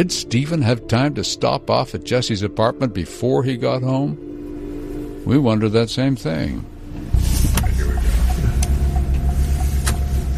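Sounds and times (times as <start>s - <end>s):
speech: 0.0s - 4.3s, 5.2s - 6.7s
car engine driving away from a police station: 6.3s - 10.3s.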